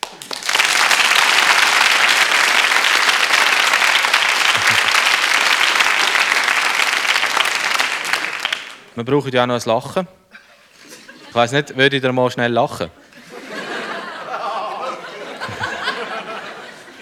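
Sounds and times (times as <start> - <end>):
applause: 0.0 - 8.9
laughter: 0.6 - 6.6, 10.3 - 12.0, 12.7 - 17.0
speech: 9.0 - 10.2, 11.4 - 13.0.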